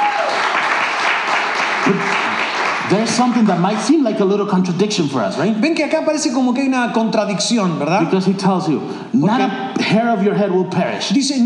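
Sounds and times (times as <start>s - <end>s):
audience clapping: 0.0s - 4.3s
speech: 3.0s - 11.4s.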